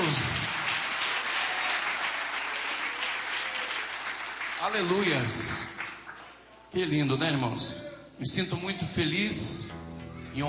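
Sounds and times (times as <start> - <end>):
crowd applauding: 0.0 - 6.4
speech: 4.6 - 5.7, 6.8 - 9.8.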